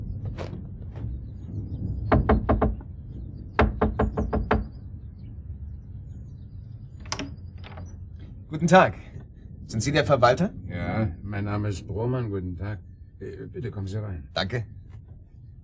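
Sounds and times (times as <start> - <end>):
low steady hum: 0.0 - 15.6
knocking on a door: 2.0 - 2.9, 3.6 - 4.8
speech: 8.6 - 9.1, 9.7 - 14.8.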